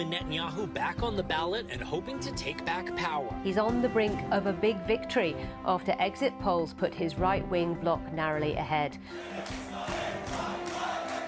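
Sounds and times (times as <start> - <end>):
speech: 0.0 - 10.0
crowd chanting at election rally: 9.2 - 11.2.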